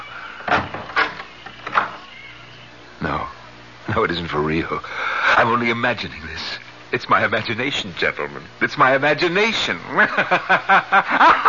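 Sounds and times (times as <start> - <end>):
closet door creaking open: 0.0 - 2.4
speech: 3.0 - 11.4
laughter: 9.8 - 11.4.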